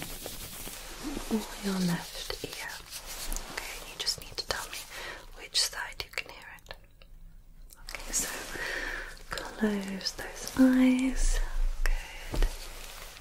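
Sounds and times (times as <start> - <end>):
rustling beside one ear: 0.0 - 4.9, 7.9 - 13.1
speech: 1.3 - 2.4, 9.6 - 11.4.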